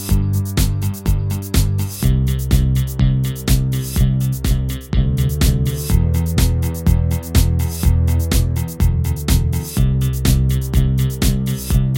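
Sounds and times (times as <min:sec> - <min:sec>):
song jam at 124 BPM in G C E minor C: 0:00.0 - 0:11.9.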